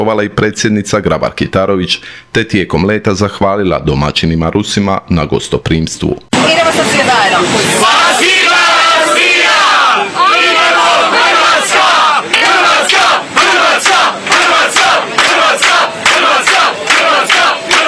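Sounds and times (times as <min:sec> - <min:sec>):
speech: 0:00.0 - 0:07.6
Croatian football fans singing and chanting aboard a plane to Russia: 0:06.4 - 0:17.8
sharp rhythmic hand claps of football fans: 0:11.7 - 0:17.8.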